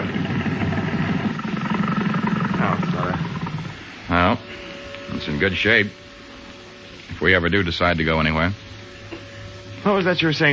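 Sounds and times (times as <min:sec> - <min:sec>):
boat engine racing while anchored: 0:00.0 - 0:04.0
speech: 0:05.4 - 0:06.0, 0:07.2 - 0:08.7, 0:09.8 - 0:10.5.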